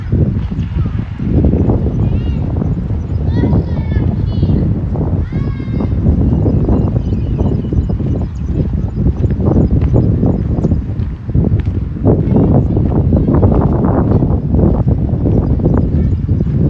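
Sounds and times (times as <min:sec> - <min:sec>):
high chirping calls: 0:00.0 - 0:04.6, 0:05.3 - 0:11.0, 0:12.1 - 0:16.6
voices: 0:00.0 - 0:10.0, 0:12.1 - 0:16.6
low rumble in Modiin, Israel: 0:00.0 - 0:16.6
clopping footsteps: 0:08.6 - 0:16.6.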